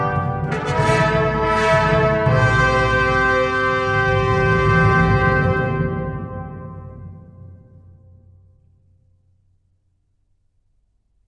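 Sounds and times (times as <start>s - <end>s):
fanfare: 0.0s - 7.0s.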